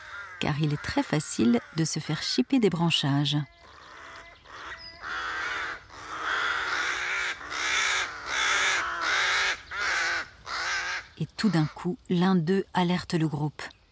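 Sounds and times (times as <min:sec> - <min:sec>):
crow colony cawing and squabbling at nests: 0:00.0 - 0:02.4, 0:03.4 - 0:11.9
speech: 0:00.4 - 0:03.6, 0:11.2 - 0:13.8.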